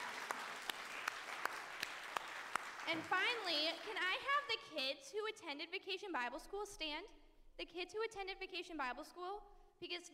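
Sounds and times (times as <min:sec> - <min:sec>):
sharp individual claps: 0:00.0 - 0:04.0
church congregation applauding: 0:00.0 - 0:04.2
speech: 0:02.9 - 0:10.1.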